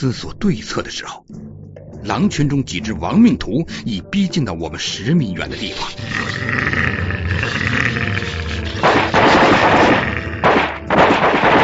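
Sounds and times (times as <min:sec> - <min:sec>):
speech: 0:00.0 - 0:07.8
gunshots: 0:08.8 - 0:11.6.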